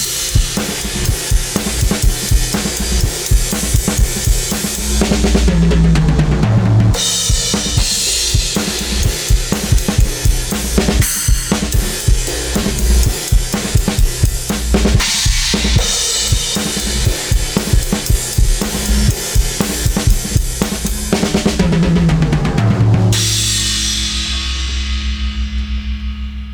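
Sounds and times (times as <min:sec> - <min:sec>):
deep bass: 0:00.3 - 0:26.5.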